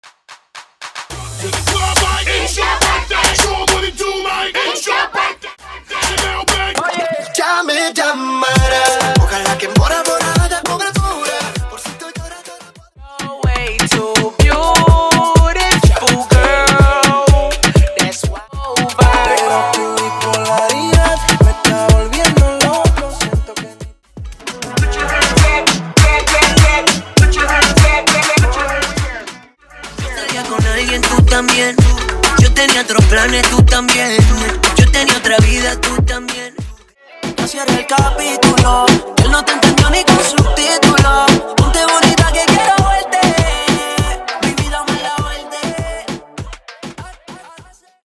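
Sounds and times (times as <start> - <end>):
Latin reggaeton music: 0.0 - 48.0.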